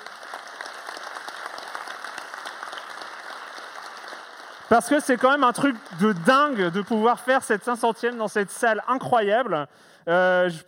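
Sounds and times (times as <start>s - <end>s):
audience applause: 0.0s - 8.5s
speech: 4.7s - 10.6s.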